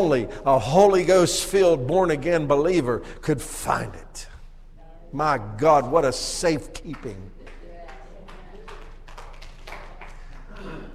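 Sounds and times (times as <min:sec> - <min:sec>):
speech: 0:00.0 - 0:04.3, 0:05.1 - 0:07.4
hand claps: 0:06.8 - 0:10.9.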